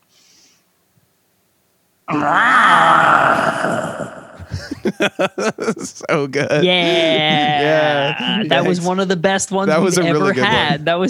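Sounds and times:
speech: 2.1s - 2.6s, 5.0s - 11.0s
person imitating a panther roar: 2.1s - 8.8s
laughter: 4.4s - 11.0s.

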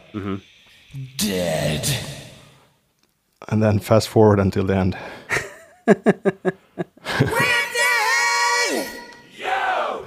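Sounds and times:
speech: 0.1s - 2.2s, 3.5s - 5.2s, 5.9s - 6.6s
laughter: 5.3s - 7.7s
pitch-shifted hockey-style choir chant: 8.8s - 10.0s.

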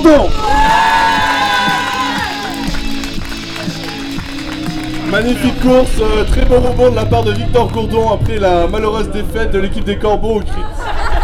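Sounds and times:
speech: 0.0s - 0.6s, 5.1s - 10.8s
crowd cheering with high whoops and shouts: 0.2s - 5.7s
crowd clapping: 0.5s - 11.2s
laughter: 10.4s - 11.2s.

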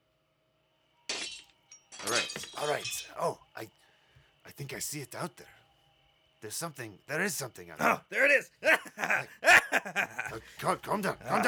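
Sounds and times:
glass shattering: 1.1s - 3.2s
speech: 4.6s - 5.6s, 6.4s - 11.4s
laughter: 7.8s - 11.4s.

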